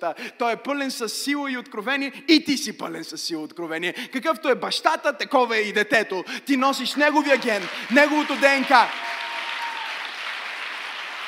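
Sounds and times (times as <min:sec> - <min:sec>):
speech: 0:00.0 - 0:09.2
audience applause: 0:07.1 - 0:11.2.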